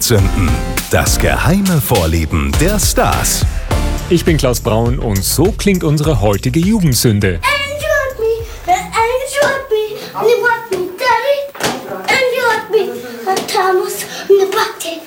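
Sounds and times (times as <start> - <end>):
speech: 0.1 - 7.6
toddler singing in old home recording: 7.4 - 15.0.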